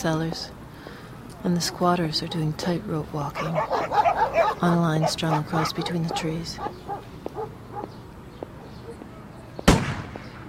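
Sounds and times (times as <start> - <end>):
speech: 0.0 - 0.6, 1.4 - 7.0
gunshots shooting wild goats and pigs: 9.7 - 10.3.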